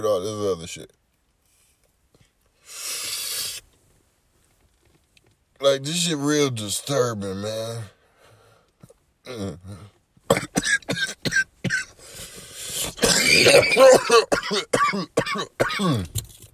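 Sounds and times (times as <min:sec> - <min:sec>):
speech: 0:00.0 - 0:01.0, 0:05.6 - 0:08.0, 0:09.3 - 0:10.9, 0:13.3 - 0:16.3
harsh smoker's coughing fit after smoking: 0:09.3 - 0:16.2.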